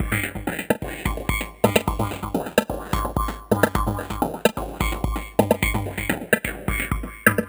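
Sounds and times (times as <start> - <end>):
VFX2 loop at 128 BPM: 0.0 - 7.4.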